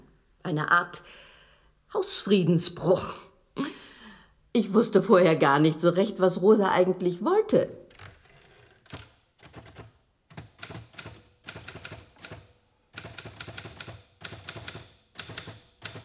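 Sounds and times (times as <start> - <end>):
speech: 0.5 - 1.3, 1.9 - 3.3, 4.6 - 7.8
typing on a mechanical typewriter: 8.9 - 16.0.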